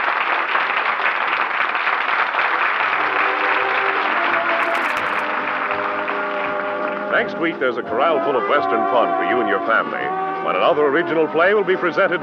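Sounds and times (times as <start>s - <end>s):
theater audience applauding: 0.0s - 7.6s
speech: 7.2s - 12.2s.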